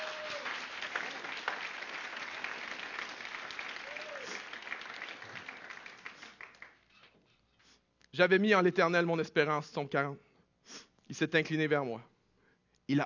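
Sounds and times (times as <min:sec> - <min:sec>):
audience applauding: 0:00.0 - 0:06.9
speech: 0:08.2 - 0:12.1, 0:12.9 - 0:13.0.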